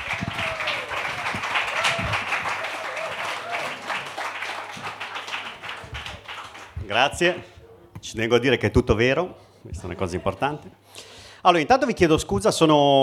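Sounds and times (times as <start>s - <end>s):
audience applause at a comedy night: 0.0s - 7.3s
speech: 6.9s - 10.8s, 11.4s - 13.0s.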